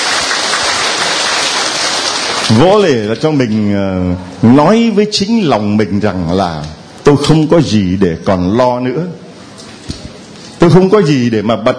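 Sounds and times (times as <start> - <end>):
loud audience applause: 0.0 - 3.0
speech: 2.5 - 9.2, 10.6 - 11.7.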